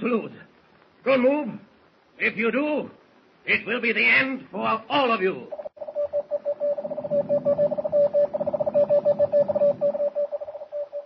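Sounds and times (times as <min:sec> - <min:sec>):
speech: 0:00.0 - 0:00.4, 0:01.0 - 0:05.7, 0:08.9 - 0:10.1
faint static hiss: 0:00.0 - 0:11.0
radio message in Morse-style beeps: 0:05.6 - 0:11.0.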